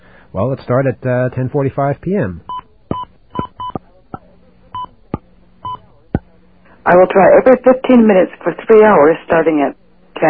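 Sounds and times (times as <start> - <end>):
speech: 0.3 - 2.5, 6.9 - 10.2
telephone keypad DTMF tones entering a time into an automated phone service: 2.9 - 3.8.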